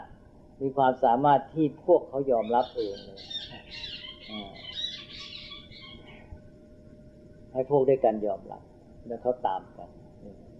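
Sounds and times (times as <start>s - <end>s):
speech: 0.6s - 4.6s, 7.6s - 10.5s
birds quarrelling with chirps and squawks: 2.3s - 6.4s.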